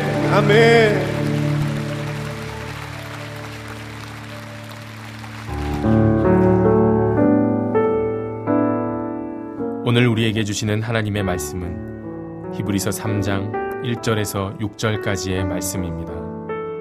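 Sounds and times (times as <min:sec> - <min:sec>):
audience applauding: 0:00.0 - 0:06.4
sustained keyboard chords: 0:00.0 - 0:16.7
speech: 0:00.3 - 0:01.2, 0:10.0 - 0:12.0, 0:12.6 - 0:16.4.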